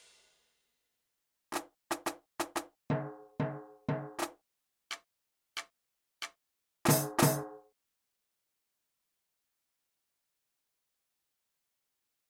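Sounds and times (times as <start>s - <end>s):
percussion: 1.5s - 7.6s.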